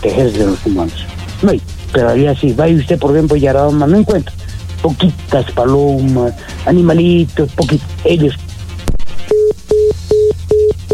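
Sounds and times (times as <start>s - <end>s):
speech: 0.0s - 8.4s
short mid-pitched beeps of a disconnected telephone line: 9.3s - 10.9s.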